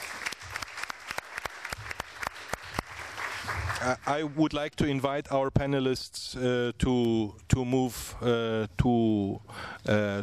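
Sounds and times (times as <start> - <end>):
audience applause: 0.0 - 4.4
speech: 3.8 - 10.2.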